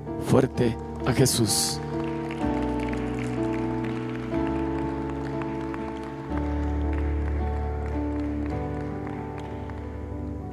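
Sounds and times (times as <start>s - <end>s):
speech: 0.3s - 1.9s
audience applauding: 0.9s - 10.5s.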